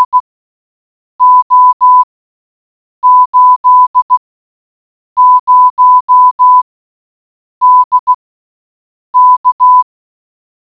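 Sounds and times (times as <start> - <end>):
morse code beeps: 0.0 - 0.2, 1.2 - 2.1, 3.0 - 4.2, 5.2 - 6.6, 7.6 - 8.2, 9.2 - 9.9.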